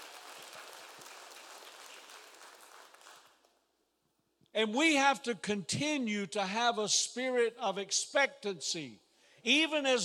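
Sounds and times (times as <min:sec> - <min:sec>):
audience clapping hands: 0:00.0 - 0:03.6
speech: 0:04.6 - 0:10.0.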